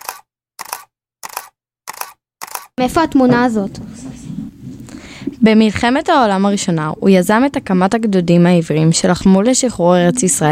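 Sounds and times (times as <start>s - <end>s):
camera shutter clicks as a group takes a selfie: 0.0s - 2.8s
speech: 2.8s - 4.2s, 5.4s - 10.5s.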